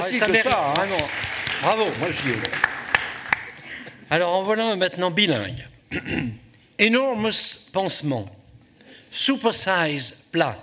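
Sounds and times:
audience applause: 0.0s - 3.9s
speech: 0.1s - 2.7s, 4.1s - 8.4s, 9.1s - 10.6s.

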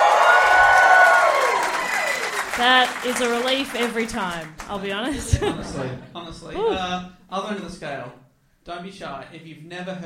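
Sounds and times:
audience applause and cheering: 0.0s - 4.7s
speech: 2.6s - 10.0s
laughter: 5.0s - 7.0s.

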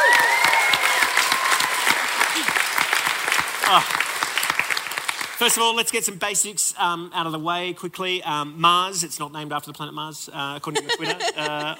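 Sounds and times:
audience applause: 0.0s - 5.6s
speech: 3.7s - 4.0s, 5.4s - 11.7s
laughter: 10.6s - 11.7s.

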